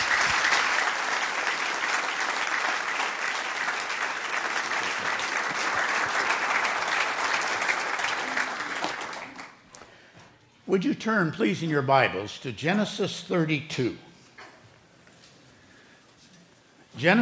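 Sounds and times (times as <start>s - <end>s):
audience clapping to welcome a guest speaker: 0.0s - 9.8s
speech: 10.7s - 14.1s, 17.0s - 17.2s.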